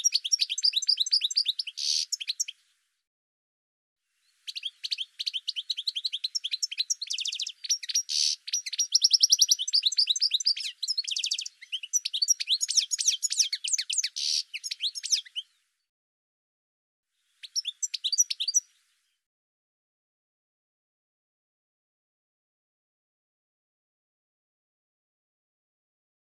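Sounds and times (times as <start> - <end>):
bird song with high chirps, down-slurred notes and quick trills: 0.0 - 2.8, 4.1 - 15.9, 17.2 - 19.3.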